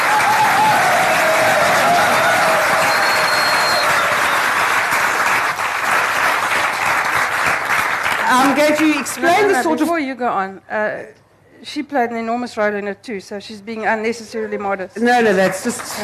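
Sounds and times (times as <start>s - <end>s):
people cheering: 0.0s - 8.5s
audience applause: 0.0s - 9.6s, 15.4s - 16.0s
whistles from the crowd: 2.7s - 4.6s
speech: 8.6s - 16.0s.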